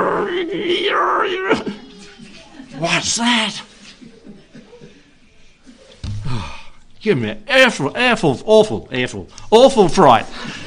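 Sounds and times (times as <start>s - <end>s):
person imitating a cat's wail at night: 0.0s - 1.8s
speech: 0.4s - 1.8s, 2.8s - 3.7s, 7.0s - 10.6s
laughter: 1.6s - 6.4s.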